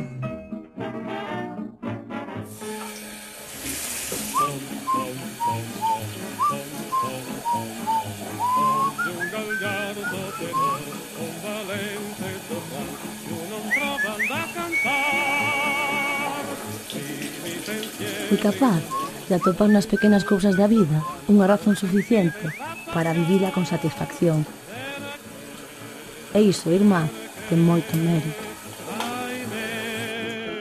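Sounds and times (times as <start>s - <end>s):
running tap water: 2.5s - 30.5s
man whistling a tune: 4.3s - 11.0s, 13.6s - 16.2s, 18.8s - 23.4s
speech: 18.3s - 24.6s, 26.3s - 28.4s.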